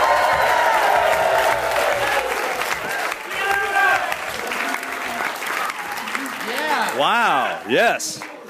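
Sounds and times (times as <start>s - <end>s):
studio audience whoops and cheers: 0.0s - 4.1s
live studio audience applauding: 0.0s - 8.4s
speech: 7.1s - 8.3s.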